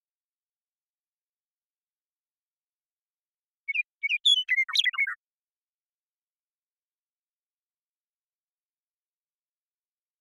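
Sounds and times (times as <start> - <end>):
western meadowlark singing: 3.7 - 5.2.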